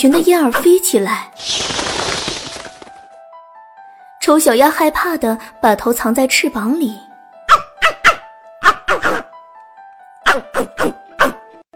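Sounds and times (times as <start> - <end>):
speech: 0.0 - 1.7, 4.2 - 7.1, 10.6 - 11.0
hunting dog barking: 7.5 - 9.3, 10.2 - 11.4.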